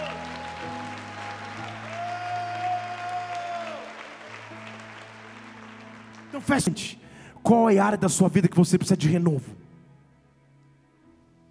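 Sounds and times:
audience applause: 0.0 - 7.1
speech: 6.4 - 9.6.

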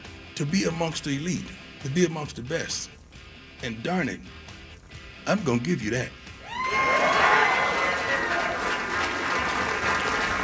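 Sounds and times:
speech: 0.4 - 3.0, 3.6 - 4.4, 5.2 - 6.9
crowd clapping: 6.6 - 10.4.

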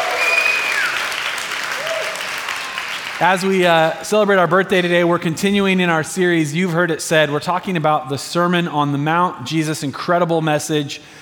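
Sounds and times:
audience cheering: 0.0 - 3.9
speech: 3.2 - 11.1.

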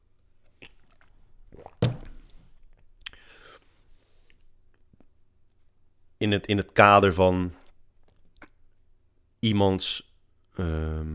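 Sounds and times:
person sipping a drink of water: 0.5 - 4.4
speech: 6.2 - 7.6, 9.4 - 11.1.

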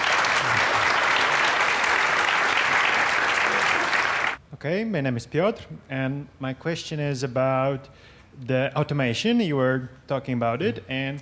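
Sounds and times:
audience applause: 0.0 - 4.4
speech: 4.6 - 11.2.

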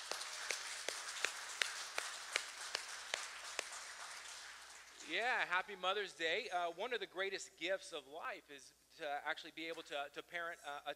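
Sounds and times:
round of applause: 0.0 - 5.5
speech: 5.1 - 10.9.

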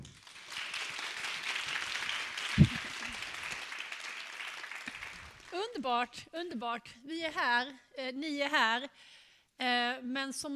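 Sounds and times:
applause: 0.0 - 5.8
speech: 5.7 - 10.5.

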